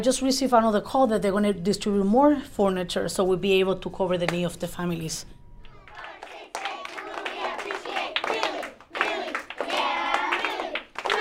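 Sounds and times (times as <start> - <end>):
speech: 0.0 - 5.4
third graders clapping rhythmically: 5.7 - 11.1.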